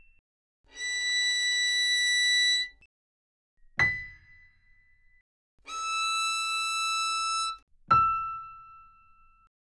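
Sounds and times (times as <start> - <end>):
violin: 0.7 - 2.8, 5.7 - 7.6
flute: 0.7 - 2.9, 5.7 - 7.6.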